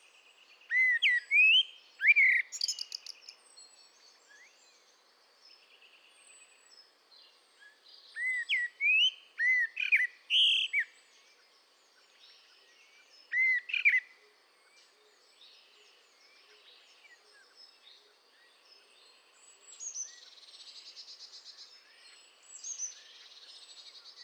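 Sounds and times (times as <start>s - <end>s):
Eurasian blackbird singing: 0.7s - 3.4s, 8.2s - 10.9s, 13.2s - 14.0s.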